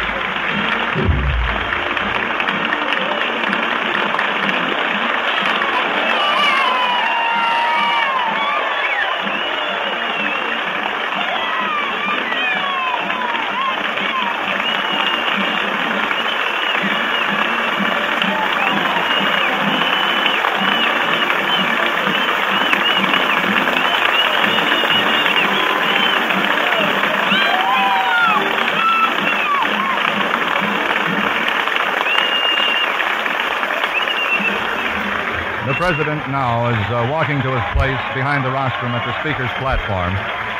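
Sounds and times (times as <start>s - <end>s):
band's bass drum thumps: 0.0s - 2.4s
loud applause from a large crowd: 0.0s - 40.5s
scattered cheers and voices: 0.0s - 40.5s
speech: 35.9s - 40.4s.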